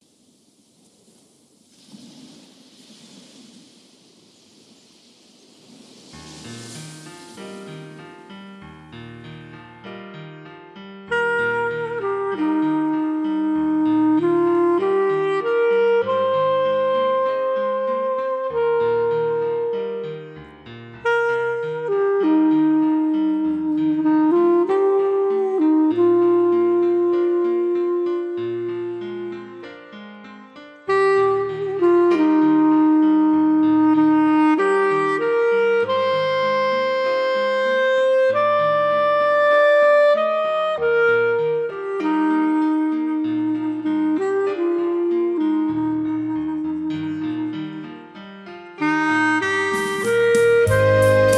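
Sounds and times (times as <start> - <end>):
clarinet: 10.8 - 51.3.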